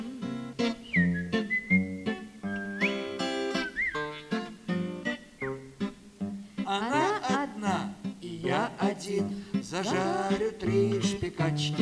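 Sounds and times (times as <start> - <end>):
man whistling short notes to a small dog: 0.6 - 4.4, 5.3 - 5.8
wavering vocal sounds: 6.7 - 11.8
speech: 9.1 - 11.8.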